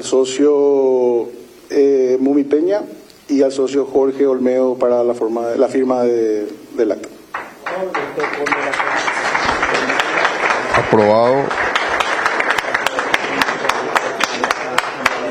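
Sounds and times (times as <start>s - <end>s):
speech: 0.0s - 7.0s, 10.9s - 11.5s
club members applauding: 7.3s - 15.2s.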